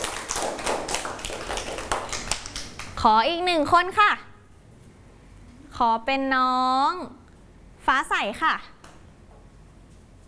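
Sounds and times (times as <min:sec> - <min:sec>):
children clapping: 0:00.0 - 0:03.0
speech: 0:03.0 - 0:04.3, 0:05.8 - 0:07.2, 0:07.9 - 0:08.8.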